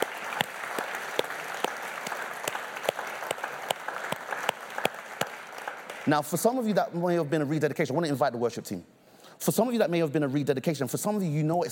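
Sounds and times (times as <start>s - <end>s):
audience clapping: 0.0s - 6.8s
speech: 6.1s - 11.7s.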